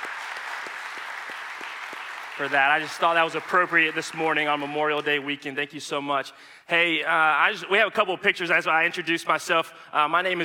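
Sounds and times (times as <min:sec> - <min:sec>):
audience applause: 0:00.0 - 0:05.0
speech: 0:02.4 - 0:10.4.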